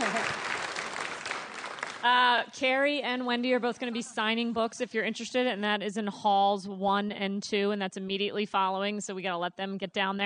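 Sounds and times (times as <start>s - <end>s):
audience applause for a conference panel: 0.0s - 2.1s
speech: 2.0s - 10.2s.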